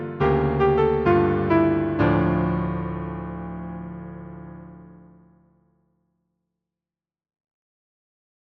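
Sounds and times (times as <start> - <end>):
hymn on piano: 0.0 - 5.4.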